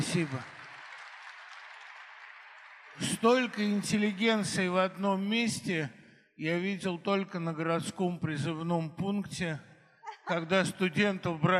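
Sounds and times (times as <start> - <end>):
audience applause: 0.0 - 4.8
speech: 0.1 - 0.6, 3.0 - 9.7, 10.3 - 11.5.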